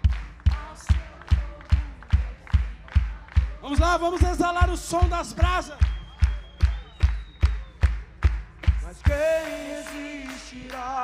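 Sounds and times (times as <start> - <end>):
church congregation clapping: 0.0 - 11.0
speech: 3.7 - 5.9.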